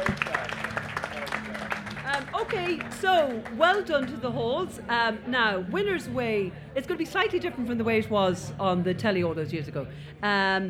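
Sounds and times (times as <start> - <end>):
audience applause: 0.0 - 3.6
speech: 2.7 - 10.6.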